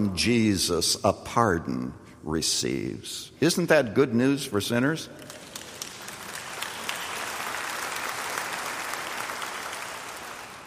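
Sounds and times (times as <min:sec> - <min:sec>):
speech: 0:00.0 - 0:05.4
audience clapping: 0:05.2 - 0:10.6.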